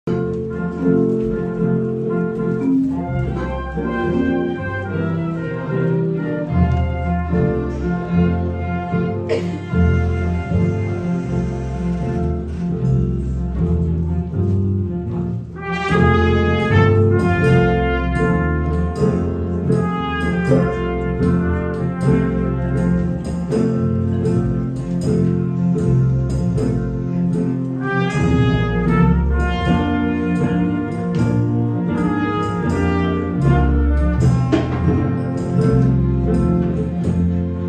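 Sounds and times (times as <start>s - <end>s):
blues music: 0.0s - 37.6s.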